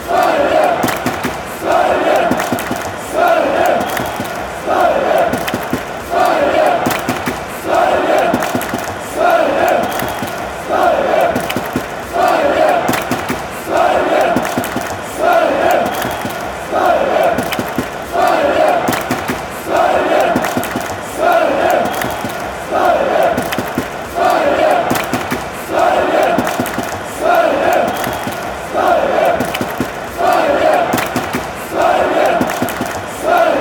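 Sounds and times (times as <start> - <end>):
hands clapping: 0.4 - 33.5.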